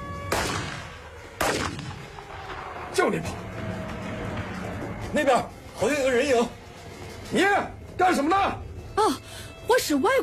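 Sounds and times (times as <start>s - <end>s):
gunshots at night during a curfew: 0.3s - 2.3s
speech: 3.0s - 3.4s, 5.1s - 6.6s, 7.3s - 10.2s.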